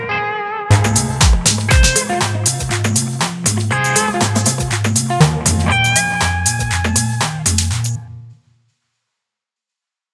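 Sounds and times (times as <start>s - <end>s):
deep tech music: 0.7s - 8.0s.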